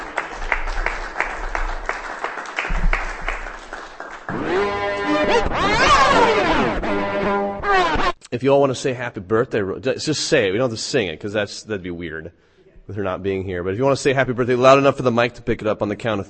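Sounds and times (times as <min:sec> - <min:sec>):
audience applause: 0:00.0 - 0:06.4
sweeping rising-and-falling tones: 0:04.3 - 0:08.2
speech: 0:08.3 - 0:16.2.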